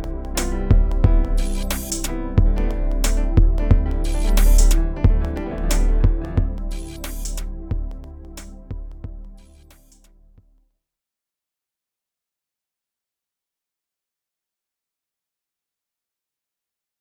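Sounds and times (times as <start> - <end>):
synth pads: 0.0 - 10.1.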